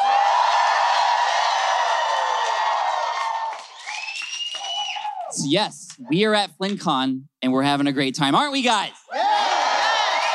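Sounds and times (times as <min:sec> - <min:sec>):
convention audience at FlynnCon in San Diego cheering and whooping: 0:00.0 - 0:05.5, 0:09.1 - 0:10.3
speech: 0:05.4 - 0:09.2.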